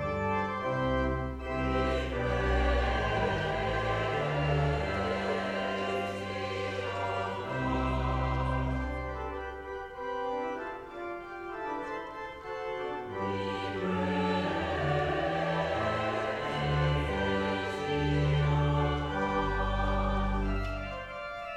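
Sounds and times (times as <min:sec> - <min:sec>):
chancel choir singing a hymn: 0:00.2 - 0:21.5.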